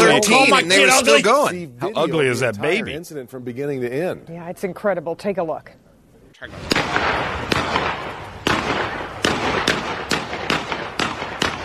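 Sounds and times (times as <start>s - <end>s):
speech: 0.2s - 5.8s, 6.4s - 7.8s
gunshots fired into a home: 6.5s - 11.6s.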